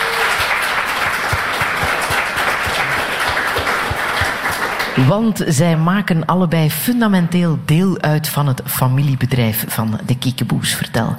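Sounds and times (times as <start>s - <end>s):
audience applause: 0.0s - 5.2s
speech: 5.0s - 11.1s.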